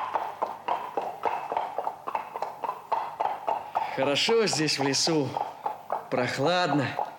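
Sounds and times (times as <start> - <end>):
horse hooves clip-clopping: 0.0 - 3.4
speech: 4.0 - 7.0.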